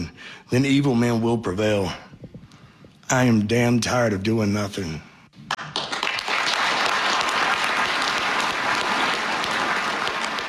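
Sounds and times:
speech: 0.0s - 2.0s, 3.1s - 5.1s
audience applause: 5.5s - 10.4s.

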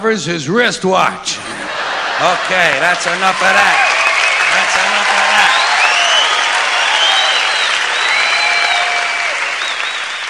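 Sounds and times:
speech: 0.0s - 1.6s, 2.2s - 3.9s, 4.5s - 5.4s
laughter: 1.4s - 5.8s
audience applause: 1.6s - 10.2s
whoops: 5.4s - 10.2s.

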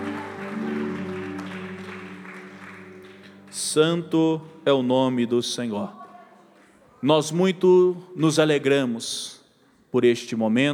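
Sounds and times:
audience clapping: 0.0s - 4.9s
speech: 3.5s - 6.0s, 7.0s - 10.7s.

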